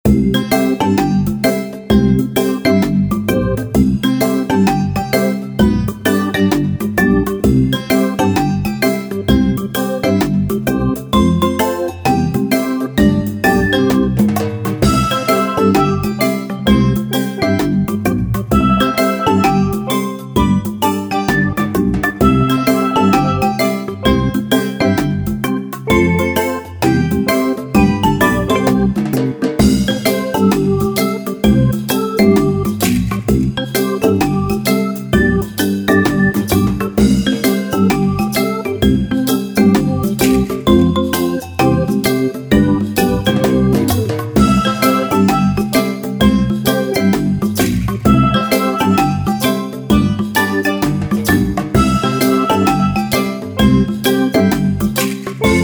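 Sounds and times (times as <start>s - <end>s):
repetitive melody: 0.1s - 55.6s.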